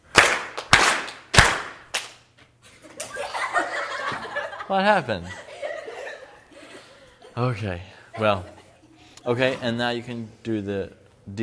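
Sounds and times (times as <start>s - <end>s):
group clapping: 0.0s - 2.3s
laughter: 2.7s - 9.6s
speech: 4.7s - 5.4s, 7.4s - 8.6s, 9.2s - 11.4s.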